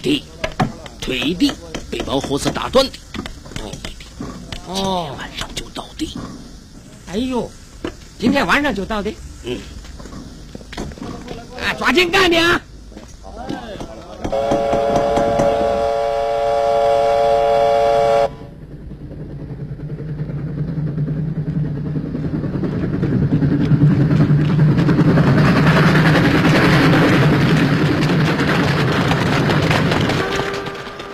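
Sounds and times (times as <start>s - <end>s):
speech: 0.0s - 0.4s, 1.0s - 3.0s, 4.7s - 6.4s, 7.1s - 7.6s, 8.2s - 9.8s, 11.6s - 12.7s, 14.3s - 15.0s
steam train chugging and rumbling: 0.0s - 31.1s
steam train whistle blast: 14.3s - 18.5s, 30.1s - 31.1s.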